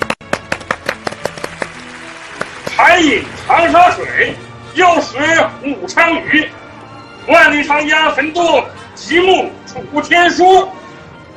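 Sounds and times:
few people clapping to welcome a poem recital: 0:00.0 - 0:03.6
speech: 0:02.9 - 0:06.6, 0:07.2 - 0:10.8.

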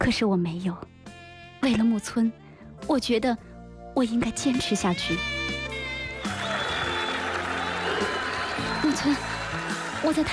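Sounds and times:
speech: 0:00.0 - 0:00.9, 0:01.6 - 0:05.4, 0:09.0 - 0:09.4, 0:10.0 - 0:10.3
short musical passage: 0:00.0 - 0:10.3
audience applause: 0:06.2 - 0:10.3.

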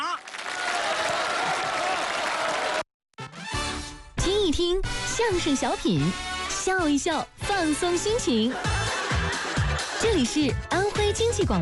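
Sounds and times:
audience applause: 0:00.0 - 0:02.8
speech: 0:04.5 - 0:08.8, 0:10.0 - 0:11.6
laughter: 0:08.4 - 0:10.4.

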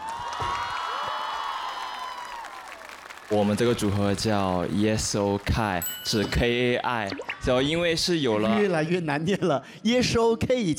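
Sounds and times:
audience applause: 0:00.0 - 0:05.9
speech: 0:03.3 - 0:10.7.

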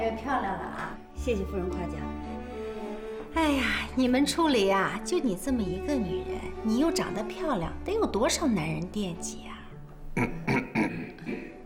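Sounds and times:
speech: 0:00.2 - 0:02.3, 0:03.4 - 0:09.6, 0:10.2 - 0:10.4
person coughing: 0:10.2 - 0:11.6.

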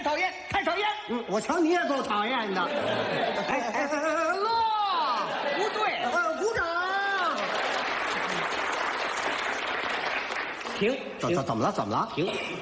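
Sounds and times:
speech: 0:00.1 - 0:04.3, 0:10.8 - 0:12.6
laughter: 0:02.3 - 0:08.7
audience applause during a comic stage routine: 0:06.9 - 0:11.0.

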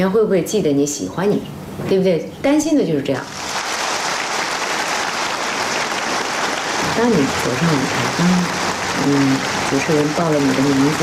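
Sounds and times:
speech: 0:00.0 - 0:03.6, 0:07.0 - 0:11.0
audience applause in a concert hall: 0:03.3 - 0:11.0.

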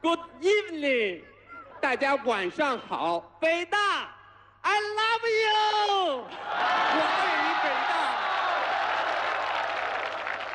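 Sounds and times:
speech: 0:00.0 - 0:08.1
audience applause at Peking University: 0:06.6 - 0:10.5.

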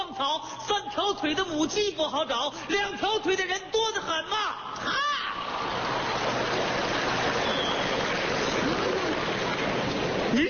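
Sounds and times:
speech: 0:00.2 - 0:05.1
audience applause: 0:05.4 - 0:10.4.

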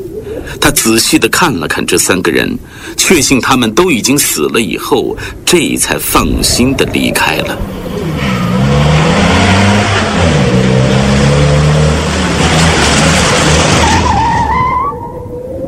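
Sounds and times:
speech: 0:00.5 - 0:08.3
ambulance speeding up and braking to stop: 0:07.0 - 0:15.6.

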